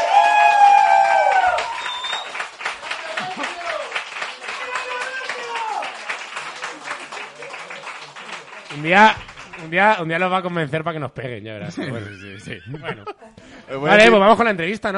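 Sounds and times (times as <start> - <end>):
audience applause: 0.0 - 10.0
speech: 8.8 - 14.9
laughter: 11.6 - 13.7.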